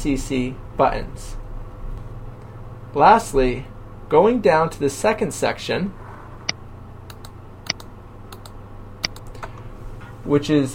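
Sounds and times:
speech: 0.0 - 1.4, 2.9 - 6.0, 10.3 - 10.7
typing a message on a computer keyboard: 7.1 - 9.6.

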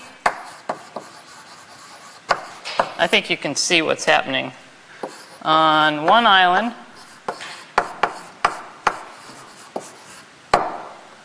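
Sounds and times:
writing scratching on a board during a lecture: 0.3 - 3.1, 5.0 - 5.4, 7.0 - 10.3
speech: 3.0 - 4.6, 5.4 - 6.8.

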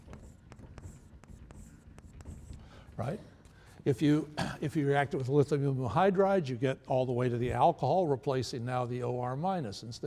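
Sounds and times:
writing on a board during a chemistry lecture: 0.0 - 4.1
speech: 3.0 - 10.0.

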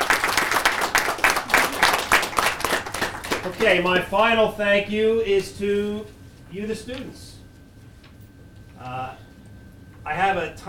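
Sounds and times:
crowd applauding: 0.0 - 3.8
speech: 3.5 - 7.4, 8.8 - 9.2, 10.0 - 10.6.

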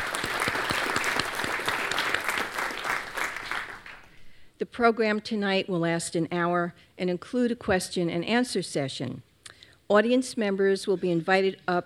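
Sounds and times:
audience applause at a New York Historical Society evening program: 0.0 - 4.2
speech: 4.6 - 9.3, 9.9 - 11.8.

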